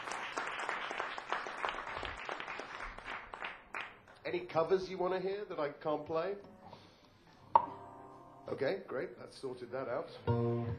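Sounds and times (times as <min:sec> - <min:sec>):
audience applause: 0:00.0 - 0:04.1
speech: 0:04.3 - 0:06.6, 0:08.5 - 0:10.7.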